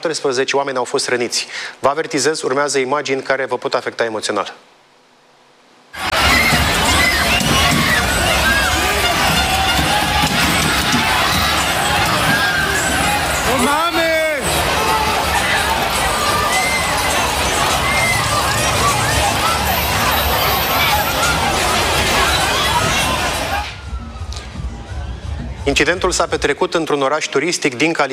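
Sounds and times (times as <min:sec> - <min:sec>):
speech: 0:00.0 - 0:04.7, 0:25.8 - 0:28.1
sharp rising yell: 0:06.0 - 0:25.2
rowdy crowd of football supporters shouting in the street: 0:06.0 - 0:25.6.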